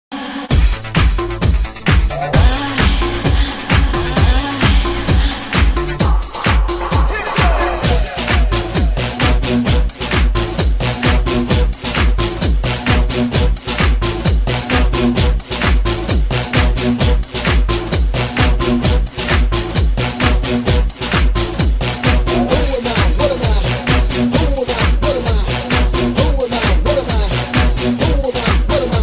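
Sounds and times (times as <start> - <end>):
electro house music: 0.1 - 29.0.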